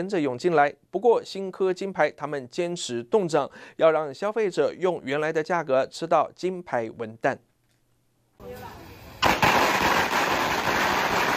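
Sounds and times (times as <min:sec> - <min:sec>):
speech: 0:00.0 - 0:07.5, 0:08.4 - 0:08.8
firecrackers popping: 0:08.5 - 0:11.3.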